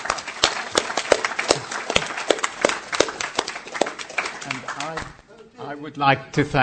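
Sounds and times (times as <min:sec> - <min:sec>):
applause: 0:00.0 - 0:05.2
speech: 0:05.7 - 0:06.6.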